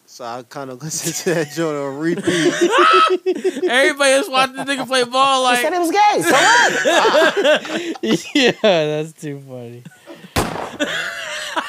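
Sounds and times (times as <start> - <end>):
speech: 0.2 - 10.0, 10.8 - 11.2
laughter: 0.9 - 9.0, 9.8 - 11.6
gunshot sound effect sample: 10.4 - 10.9.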